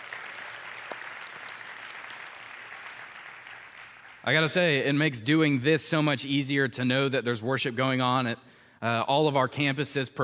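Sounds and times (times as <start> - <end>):
audience applause: 0.0 - 4.7
speech: 4.2 - 10.2.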